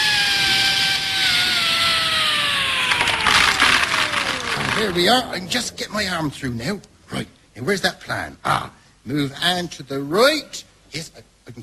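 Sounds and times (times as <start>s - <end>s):
electric drill boring through wood: 0.0s - 5.1s
speech: 4.8s - 11.6s.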